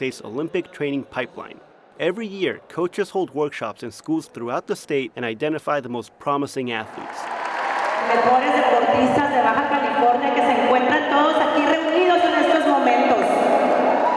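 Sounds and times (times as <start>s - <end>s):
speech: 0.0s - 7.4s, 8.0s - 13.4s
large crowd applauding and cheering: 6.8s - 9.0s, 13.1s - 14.1s.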